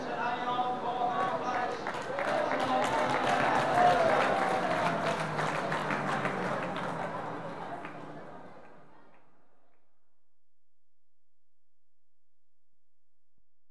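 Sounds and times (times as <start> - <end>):
race recorded from behind enclosed glass: 0.0 - 10.1.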